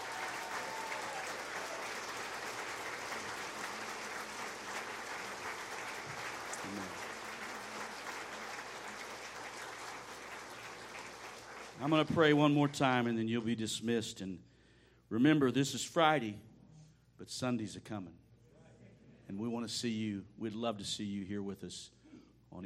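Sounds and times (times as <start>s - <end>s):
audience applause: 0.0s - 12.6s
speech: 6.7s - 7.0s, 11.8s - 14.5s, 15.1s - 16.5s, 17.2s - 18.2s, 19.3s - 22.6s.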